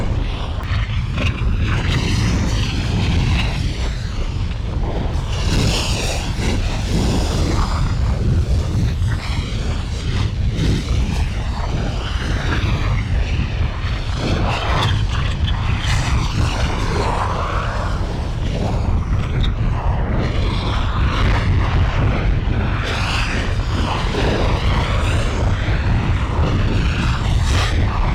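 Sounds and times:
volcano: 0.0s - 28.1s.

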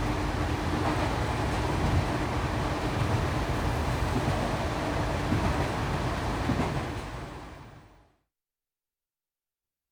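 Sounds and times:
train interior ambience: 0.0s - 7.7s.

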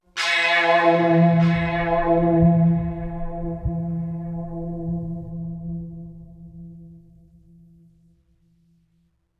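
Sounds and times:
mysterious string music: 0.3s - 6.6s.

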